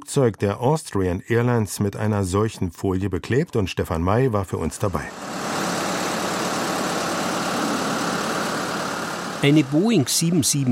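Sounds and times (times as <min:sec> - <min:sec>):
speech: 0:00.1 - 0:05.5, 0:09.4 - 0:10.7
engine of vehicle with lifting platform: 0:04.9 - 0:10.7.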